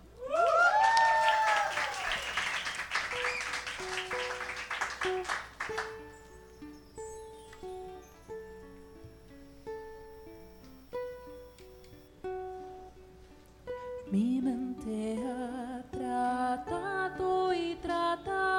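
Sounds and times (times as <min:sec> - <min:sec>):
live audience applauding loudly: 0:00.2 - 0:06.3
rising whistles: 0:00.2 - 0:12.1
sustained musical notes: 0:02.5 - 0:18.5.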